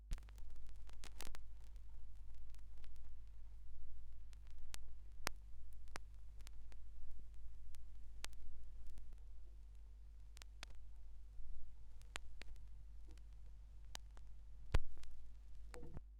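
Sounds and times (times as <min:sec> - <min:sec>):
vinyl record noise: 0:00.1 - 0:16.0.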